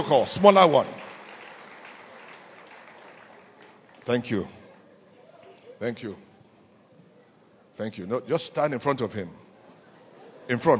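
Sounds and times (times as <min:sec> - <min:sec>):
speech: 0:00.0 - 0:01.0, 0:04.1 - 0:04.6, 0:05.8 - 0:06.3, 0:07.8 - 0:09.4, 0:10.5 - 0:10.7
audience clapping hands: 0:00.0 - 0:04.8.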